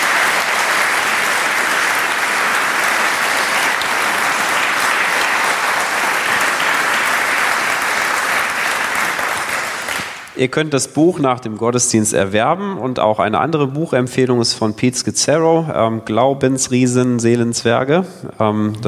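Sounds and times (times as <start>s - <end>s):
audience applause: 0.0s - 10.4s
speech: 10.4s - 18.8s.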